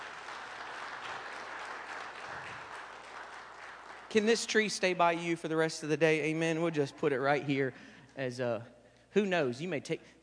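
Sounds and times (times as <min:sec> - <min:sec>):
audience applause: 0:00.0 - 0:04.5
speech: 0:04.1 - 0:10.2.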